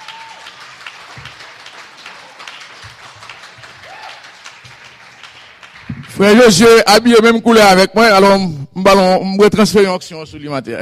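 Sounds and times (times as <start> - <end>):
audience applause: 0.0 - 6.6
speech: 6.2 - 10.8.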